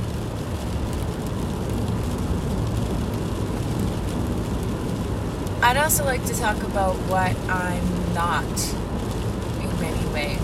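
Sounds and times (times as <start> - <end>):
rain falling on a car: 0.0 - 10.4
speech: 5.6 - 8.9, 9.8 - 10.4.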